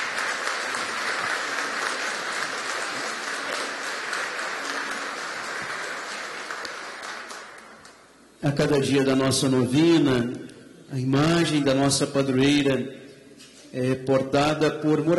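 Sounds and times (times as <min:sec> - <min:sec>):
warm applause: 0:00.0 - 0:08.2
speech: 0:08.4 - 0:13.0, 0:13.7 - 0:15.1.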